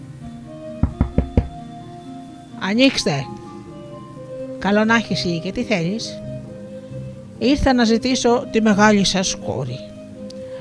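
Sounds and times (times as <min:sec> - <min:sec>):
knocking on a door: 0:00.8 - 0:01.6
speech: 0:02.6 - 0:03.4, 0:04.6 - 0:06.3, 0:07.4 - 0:09.9.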